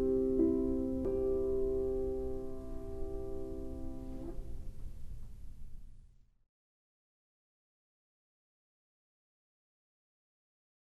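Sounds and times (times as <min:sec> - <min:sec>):
piano suite: 0:00.0 - 0:04.8.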